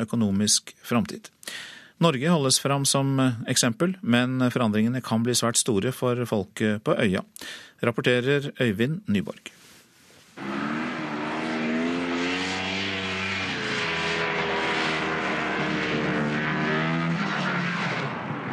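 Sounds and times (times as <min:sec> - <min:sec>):
speech: 0:00.0 - 0:09.6
snowmobiles droning across sea ice off Greenland: 0:10.4 - 0:18.5.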